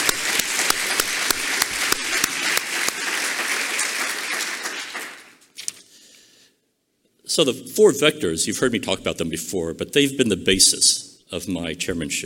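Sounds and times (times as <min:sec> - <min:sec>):
crowd applauding: 0:00.0 - 0:05.5
speech: 0:07.4 - 0:12.2.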